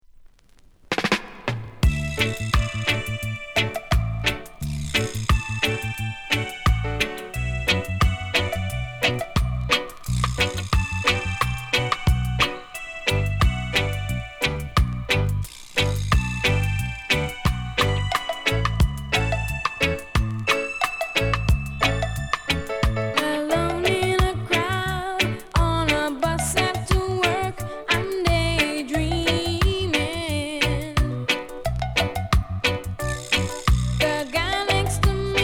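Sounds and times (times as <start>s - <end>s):
reggae music: 0.9s - 35.4s.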